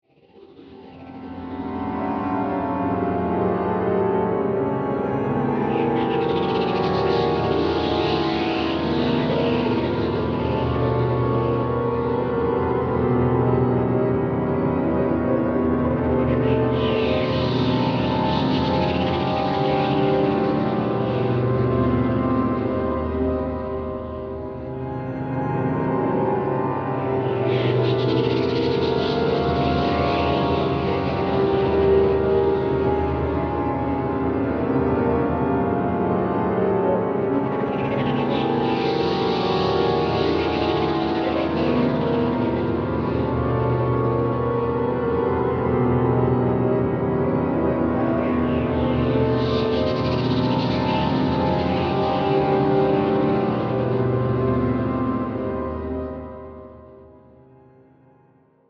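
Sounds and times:
eerie reversed piano swells: 0:00.6 - 0:57.4.

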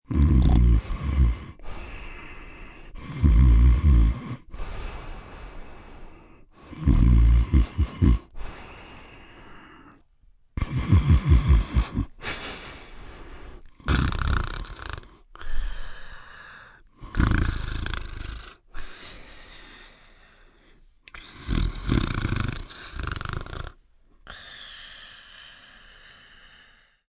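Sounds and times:
man snoring and snorting deeply: 0:00.1 - 0:05.2, 0:06.6 - 0:10.0, 0:10.6 - 0:12.4, 0:13.5 - 0:19.0, 0:21.1 - 0:24.7.

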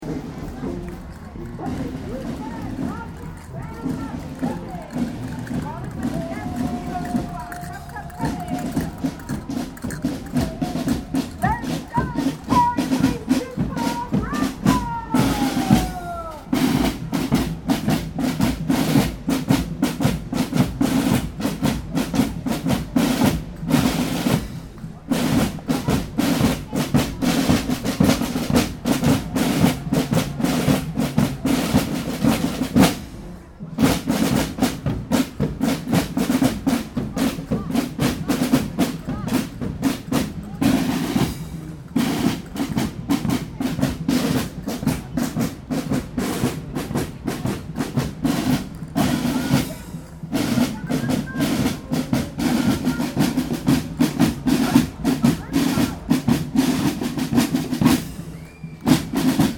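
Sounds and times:
Melbourne Moomba Parade police junior drum group playing: 0:00.0 - 0:59.5.

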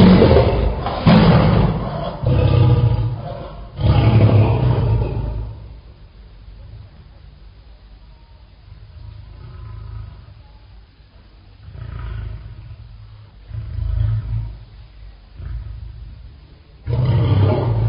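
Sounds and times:
lion roaring: 0:00.0 - 0:05.9, 0:08.8 - 0:10.4, 0:11.6 - 0:17.8.

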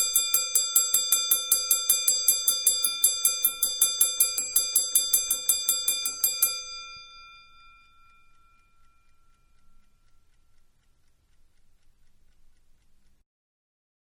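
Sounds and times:
old wind-up alarm clock bell ringing: 0:00.0 - 0:10.7.

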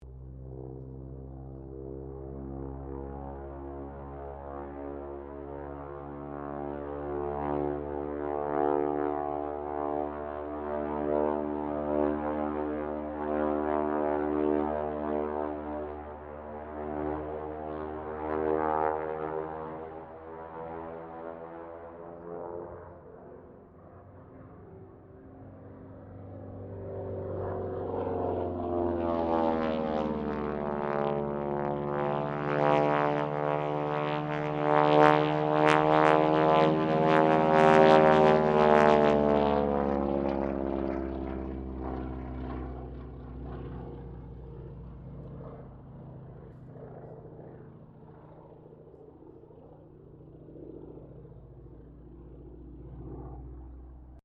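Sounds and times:
AT-6D Harvard Mk III aircraft rolling: 0:00.0 - 0:54.2.

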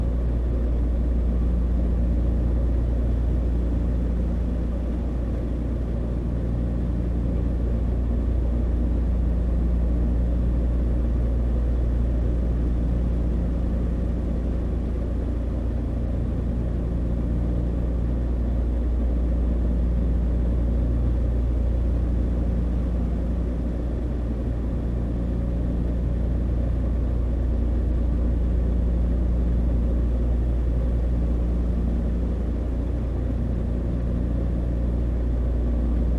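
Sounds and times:
Douglas DC3 aircraft flying, heard from the interior: 0:00.0 - 0:36.1.

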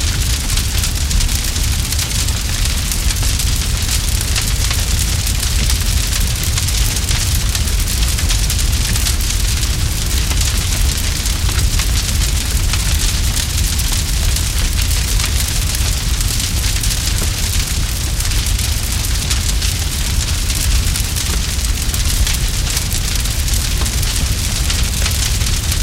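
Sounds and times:
large blaze crackling heavily: 0:00.0 - 0:25.8.

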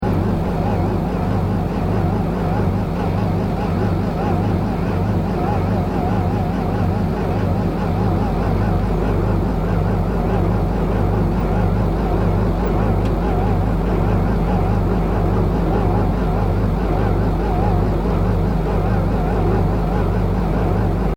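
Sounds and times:
sci-fi vehicle hovering: 0:00.0 - 0:21.1.

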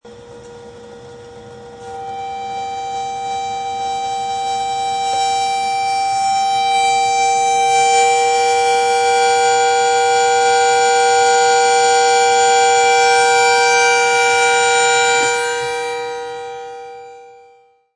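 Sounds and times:
tea kettle steaming and whistling shrilly: 0:00.0 - 0:17.4.

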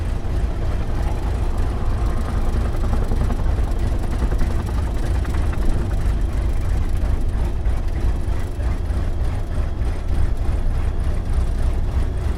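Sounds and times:
T-28D Trojan aircraft taxiing, heard from the interior: 0:00.0 - 0:12.3.

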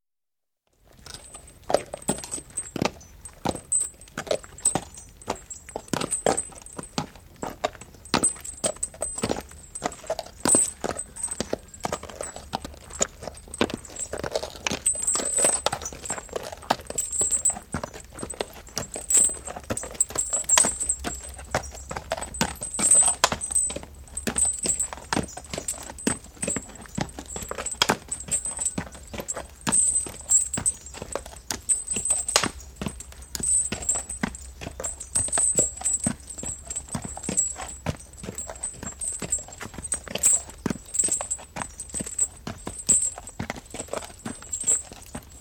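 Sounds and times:
one horse walking in harness: 0:00.8 - 0:45.3
horse harness jingling: 0:00.9 - 0:45.3.

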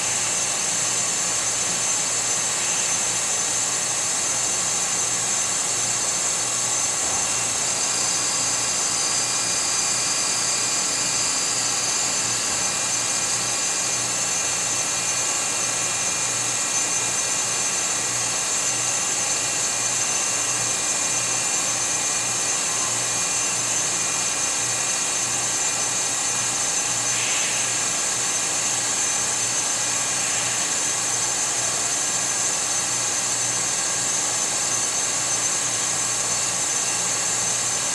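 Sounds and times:
factory water filtration room ambience: 0:00.0 - 0:37.9.

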